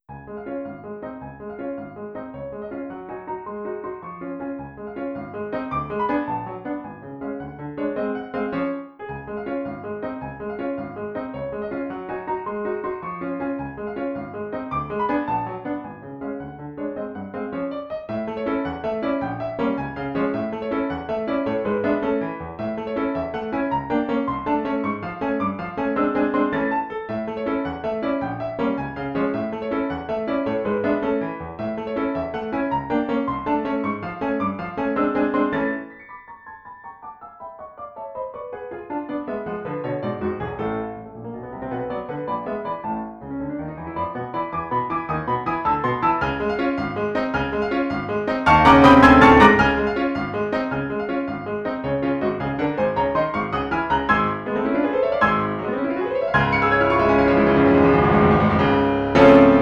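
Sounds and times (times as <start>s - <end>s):
piano in D flat: 0.0s - 59.6s.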